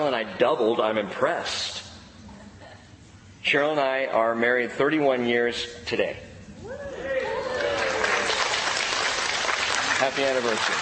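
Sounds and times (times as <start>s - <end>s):
speech: 0.0s - 1.9s, 3.4s - 6.8s, 10.0s - 10.8s
voices whooping: 6.6s - 8.5s
crowd applauding: 7.0s - 10.8s.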